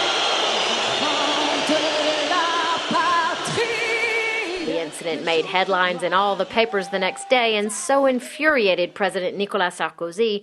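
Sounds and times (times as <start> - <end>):
shrill whistles from stadium crowd: 0.0 - 1.8
large stadium crowd roar: 0.0 - 9.0
speech: 5.0 - 10.4.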